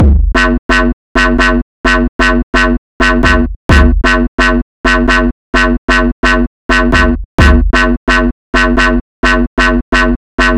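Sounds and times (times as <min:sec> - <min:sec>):
music beat: 0:00.0 - 0:10.5.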